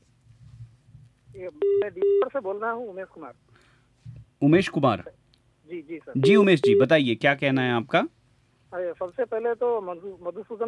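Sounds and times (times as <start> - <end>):
speech: 1.4 - 3.5, 4.4 - 10.6
telephone tones as a caller's line connects to a radio call-in show: 6.2 - 7.0.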